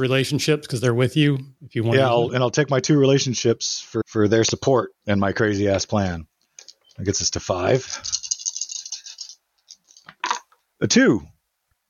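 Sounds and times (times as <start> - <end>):
speech: 0.0 - 6.3, 7.0 - 8.2, 10.8 - 11.3
dice rattling: 7.9 - 10.6.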